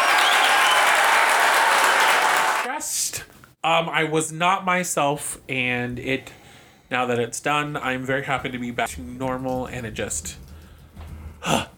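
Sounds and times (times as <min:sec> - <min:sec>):
group applause sound effect: 0:00.0 - 0:02.7
speech: 0:03.6 - 0:10.4, 0:11.4 - 0:11.7.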